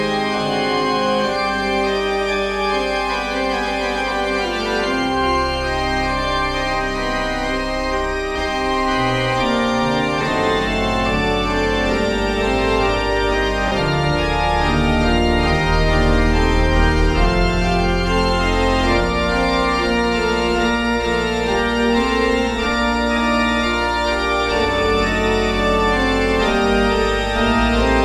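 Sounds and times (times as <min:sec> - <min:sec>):
pipe organ: 0:00.0 - 0:28.0.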